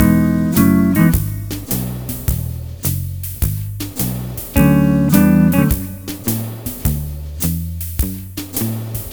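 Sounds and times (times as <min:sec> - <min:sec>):
multiple swing guitars: 0:00.0 - 0:03.1, 0:03.9 - 0:07.7.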